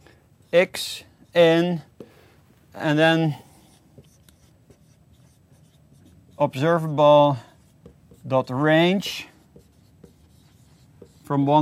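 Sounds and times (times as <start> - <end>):
speech: 0.5 - 1.9, 2.8 - 3.5, 6.4 - 7.5, 8.2 - 9.3, 11.3 - 11.6
scratching of code notation being written by hand: 3.6 - 6.5, 7.6 - 11.3.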